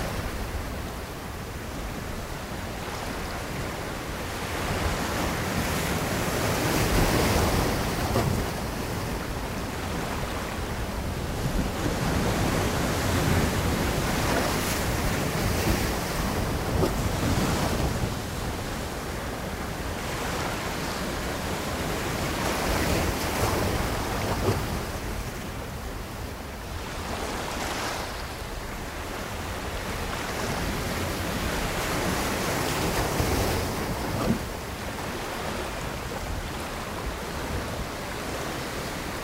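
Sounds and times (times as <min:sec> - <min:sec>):
ocean ambience: 0:00.0 - 0:39.2.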